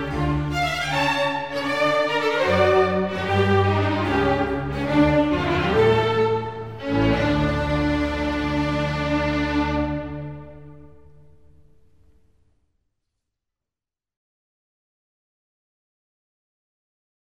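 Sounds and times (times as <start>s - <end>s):
flute concerto in D major: 0.1s - 11.1s.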